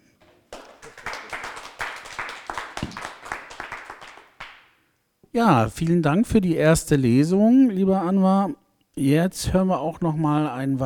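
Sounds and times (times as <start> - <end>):
audience applause: 0.5 - 4.6
speech: 5.4 - 10.8.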